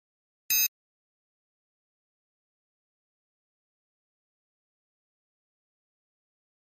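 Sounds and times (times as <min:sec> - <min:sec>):
high-frequency electronic flash beep: 0:00.5 - 0:00.7.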